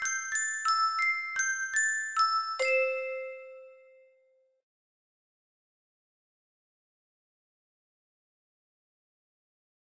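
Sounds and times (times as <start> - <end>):
Christmas song: 0.0 - 4.5.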